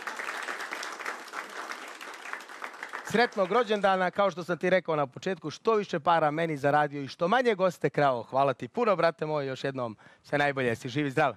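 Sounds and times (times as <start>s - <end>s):
audience applause for a waiter's birthday: 0.0s - 4.1s
speech: 3.1s - 11.3s.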